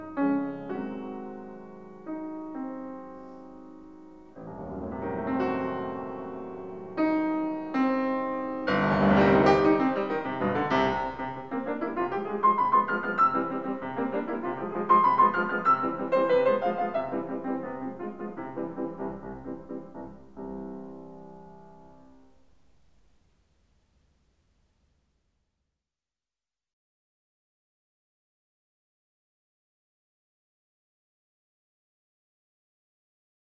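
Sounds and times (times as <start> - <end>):
piano sonata: 0.0 - 23.6.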